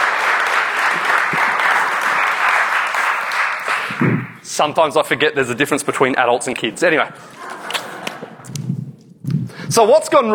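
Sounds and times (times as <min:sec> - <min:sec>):
audience applause: 0:00.0 - 0:04.4
speech: 0:04.0 - 0:07.5, 0:09.7 - 0:10.3
laughter: 0:06.6 - 0:08.7.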